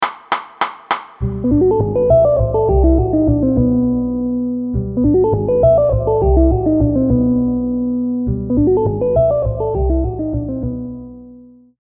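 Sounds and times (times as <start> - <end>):
jazz music: 1.2 - 11.2.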